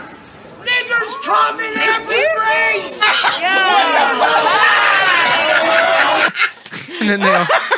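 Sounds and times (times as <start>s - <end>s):
crowd booing: 0.8s - 6.4s
laughter: 1.6s - 7.7s
speech: 7.0s - 7.7s.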